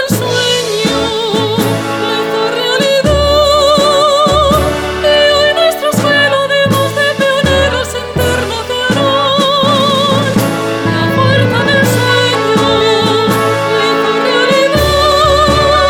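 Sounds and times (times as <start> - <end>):
school hymn: 0.0 - 15.8.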